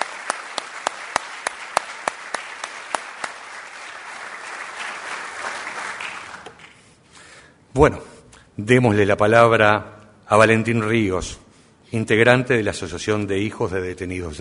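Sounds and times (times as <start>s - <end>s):
audience applause: 0.0s - 6.8s
speech: 7.8s - 14.3s.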